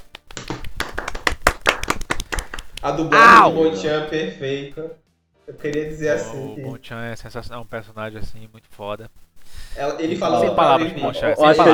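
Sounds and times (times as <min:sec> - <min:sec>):
hands clapping: 0:00.0 - 0:03.5
speech: 0:02.8 - 0:09.2, 0:09.8 - 0:11.7.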